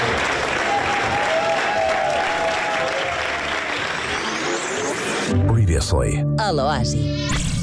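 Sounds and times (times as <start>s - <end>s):
crowd applause: 0.0s - 5.3s
speech: 5.8s - 7.5s.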